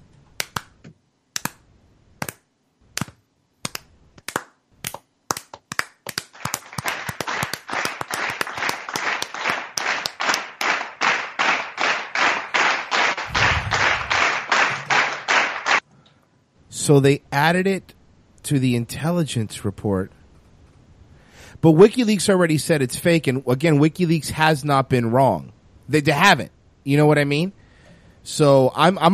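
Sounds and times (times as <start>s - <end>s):
slow clap from a single pair of hands: 3.0s - 15.8s
speech: 16.9s - 20.2s, 21.6s - 27.6s, 28.2s - 29.1s.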